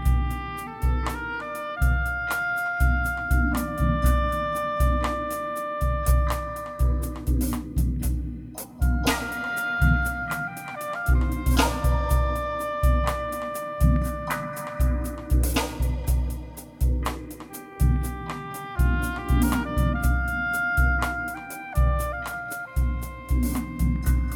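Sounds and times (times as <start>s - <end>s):
oboe solo: 0.0s - 7.3s, 8.8s - 16.0s, 17.4s - 24.3s
drums: 0.0s - 24.3s.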